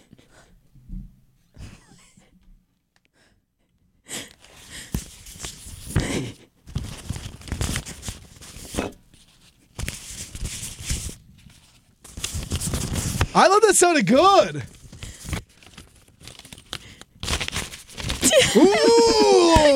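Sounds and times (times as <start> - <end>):
loose paper rustling and crinkling: 4.4 - 6.0, 6.6 - 18.6
speech: 13.4 - 14.8
laughter: 18.2 - 19.7.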